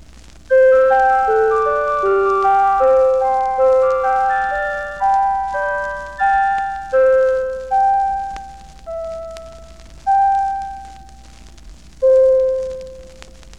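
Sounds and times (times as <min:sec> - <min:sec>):
flute tones imitating a little music box: 0:00.5 - 0:11.3, 0:12.0 - 0:13.3.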